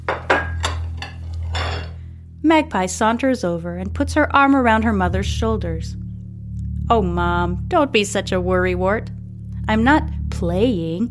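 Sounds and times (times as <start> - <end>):
steady low hum: 0.0 - 11.0
stack of ceramic plates being set down: 0.1 - 2.0
speech: 2.4 - 6.0, 6.9 - 11.0.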